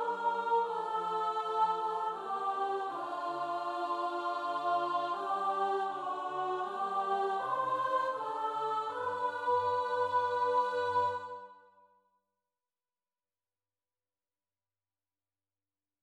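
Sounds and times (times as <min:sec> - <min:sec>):
sopranos and altos singing: 0:00.0 - 0:11.6.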